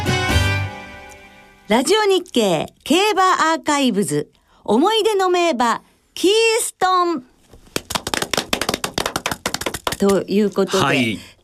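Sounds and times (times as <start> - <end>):
speech: 1.7 - 7.3, 10.0 - 11.3
small group clapping: 7.6 - 10.9.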